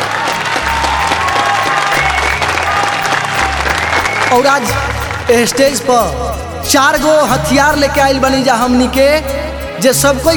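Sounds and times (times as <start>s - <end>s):
faint cheers: 0.0s - 6.2s
crowd applauding: 0.0s - 6.4s
low rhythmic musical pulse: 0.0s - 10.3s
speech: 4.3s - 10.3s.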